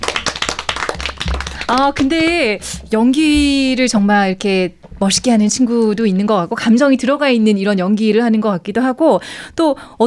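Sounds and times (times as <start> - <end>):
clapping: 0.0 - 2.4
speech: 1.7 - 10.0.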